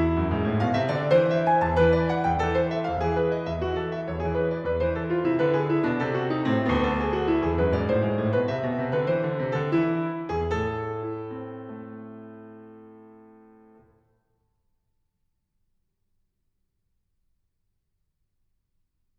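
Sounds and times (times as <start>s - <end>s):
baroque keyboard courante: 0.0s - 13.9s.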